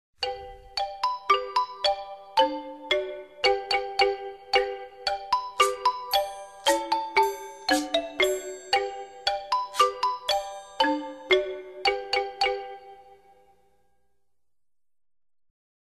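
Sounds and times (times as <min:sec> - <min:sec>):
music: 0:00.2 - 0:14.4.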